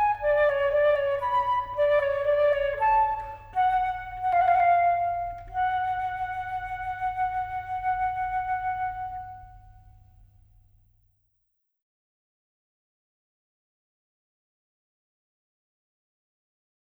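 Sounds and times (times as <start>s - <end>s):
solo flute: 0.0s - 10.1s.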